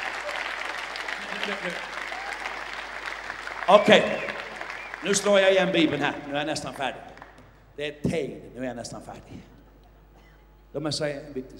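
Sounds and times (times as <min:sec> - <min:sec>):
applause: 0:00.0 - 0:07.5
speech: 0:01.5 - 0:02.0, 0:03.7 - 0:04.3, 0:05.0 - 0:07.1, 0:07.8 - 0:09.5, 0:10.7 - 0:11.5.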